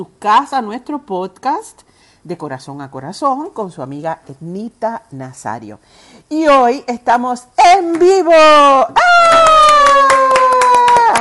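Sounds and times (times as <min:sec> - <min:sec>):
speech: 0:00.0 - 0:10.1
applause: 0:09.1 - 0:11.2.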